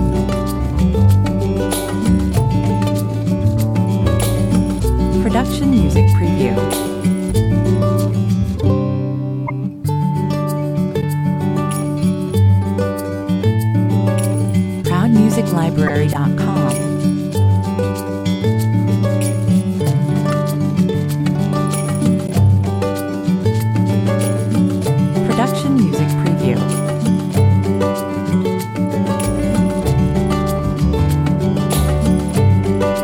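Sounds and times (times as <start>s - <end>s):
casual music without drums: 0.0s - 33.0s.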